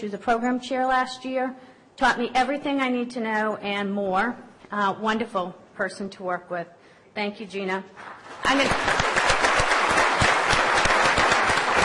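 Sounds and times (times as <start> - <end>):
speech: 0.0 - 9.1
audience applause: 8.4 - 11.8.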